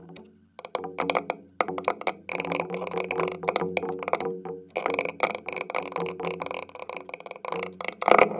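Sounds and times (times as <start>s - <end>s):
bouncy drumming: 0.0s - 8.2s.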